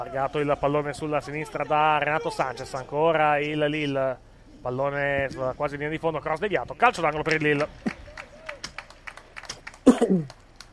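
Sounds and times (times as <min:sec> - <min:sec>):
speech: 0:00.0 - 0:08.0, 0:10.1 - 0:10.4
scattered handclaps from a few people on a football team's bench: 0:07.1 - 0:10.7.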